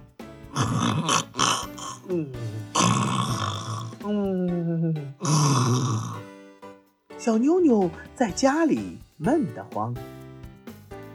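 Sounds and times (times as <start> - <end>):
voice imitating loud snoring: 0.5 - 6.3
speech: 2.1 - 2.8, 7.2 - 10.2.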